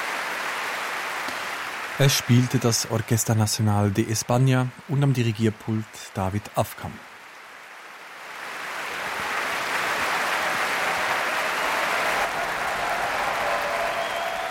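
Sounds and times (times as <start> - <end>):
enthusiastic concert audience applause: 0.0 - 3.2, 8.2 - 14.4
speech: 2.0 - 7.1.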